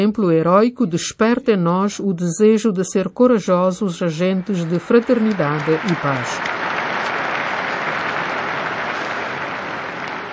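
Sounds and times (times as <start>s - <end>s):
speech: 0.0s - 7.2s
crowd applause: 4.1s - 10.3s.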